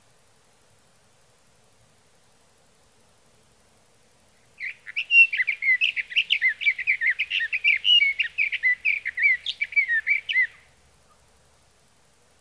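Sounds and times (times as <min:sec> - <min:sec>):
sage thrasher song warbling: 0:04.6 - 0:11.2.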